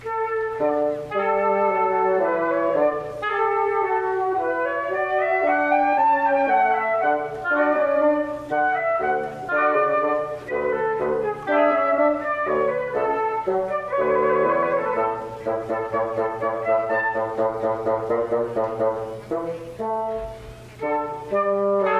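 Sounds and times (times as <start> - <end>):
chamber music: 0.0 - 21.9.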